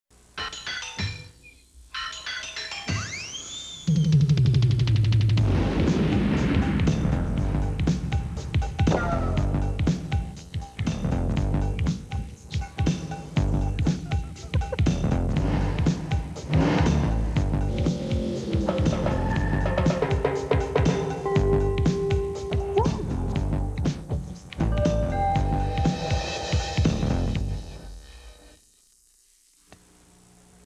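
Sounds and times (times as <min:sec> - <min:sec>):
urban groove music: 0:04.3 - 0:28.5.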